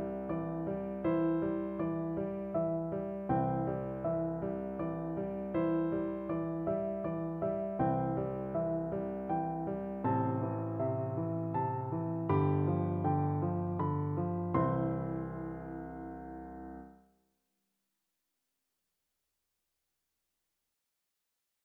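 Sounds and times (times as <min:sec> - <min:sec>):
piano duet: 0:00.0 - 0:17.0.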